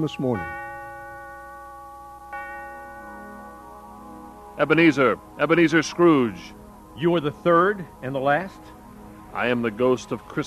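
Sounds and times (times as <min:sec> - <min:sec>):
speech: 0:00.0 - 0:00.6, 0:04.6 - 0:10.4
steeple bell ringing: 0:00.0 - 0:05.9.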